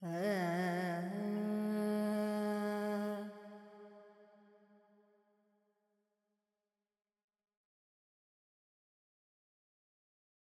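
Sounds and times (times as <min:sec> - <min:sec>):
Carnatic female vocal alaps in G pentatonic: 0:00.0 - 0:03.8.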